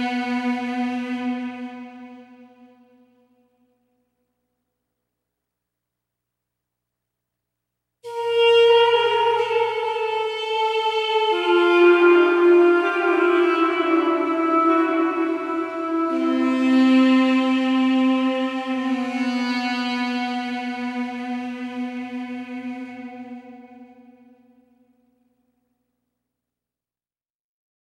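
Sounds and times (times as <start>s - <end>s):
ethnic solo instrument: 0.0s - 3.8s, 8.0s - 25.2s.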